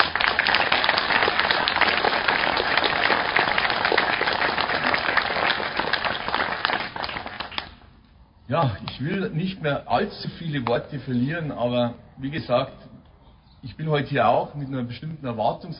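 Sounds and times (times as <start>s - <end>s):
audience applause: 0.0s - 7.8s
speech: 8.5s - 12.9s, 13.7s - 15.7s.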